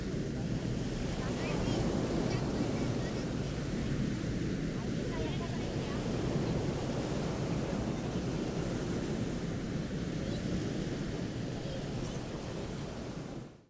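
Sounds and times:
quiet morning waves on sand at the seaside: 0:00.0 - 0:13.5.

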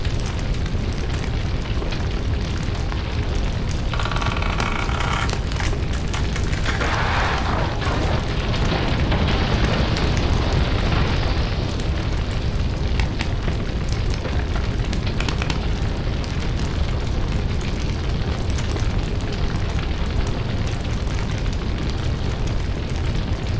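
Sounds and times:
intense fire raging in a burning house: 0:00.0 - 0:23.5.

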